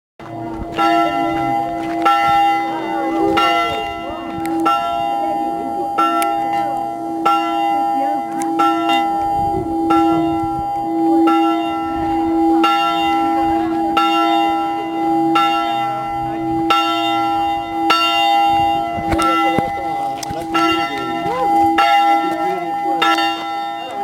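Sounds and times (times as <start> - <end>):
church bell ringing: 0.2 - 24.0.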